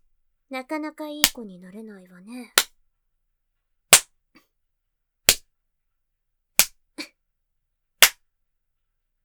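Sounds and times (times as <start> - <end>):
speech: 0.5 - 2.7
spanking slaps on buttocks: 8.0 - 8.2.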